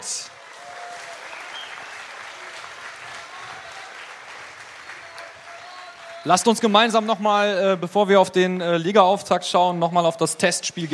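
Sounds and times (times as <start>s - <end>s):
audience applause: 0.0s - 8.6s
speech: 6.2s - 10.9s.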